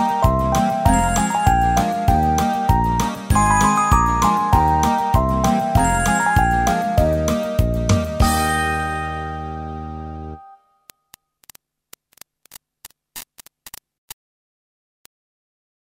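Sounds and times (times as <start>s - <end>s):
children's New Year instrumental backing track: 0.0s - 10.6s.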